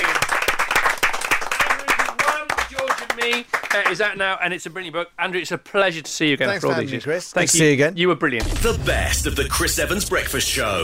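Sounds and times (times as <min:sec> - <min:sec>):
audience applause: 0:00.0 - 0:04.0
speech: 0:03.3 - 0:10.8.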